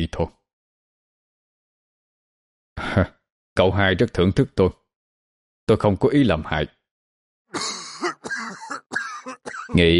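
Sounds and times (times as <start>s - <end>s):
speech: 0.0s - 0.4s, 2.9s - 4.8s, 5.7s - 6.8s, 9.7s - 9.9s
person coughing: 7.6s - 9.8s.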